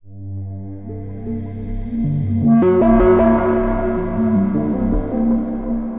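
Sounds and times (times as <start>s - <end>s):
drum and bass music at 160 bpm: 2.0s - 5.9s.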